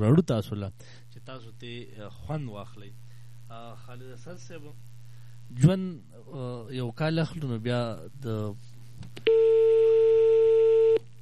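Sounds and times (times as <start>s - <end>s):
speech: 0.0s - 4.9s, 5.5s - 10.2s
telephone tone after a dropped call: 9.3s - 11.0s.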